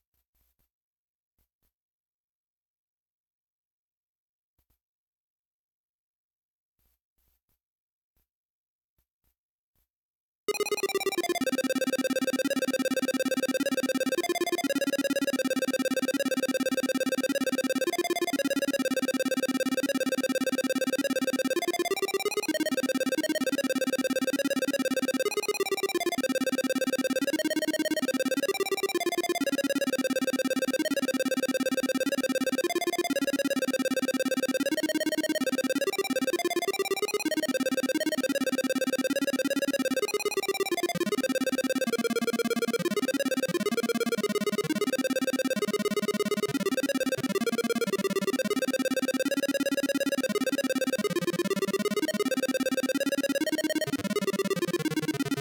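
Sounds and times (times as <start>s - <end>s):
melody: 10.5s - 55.3s.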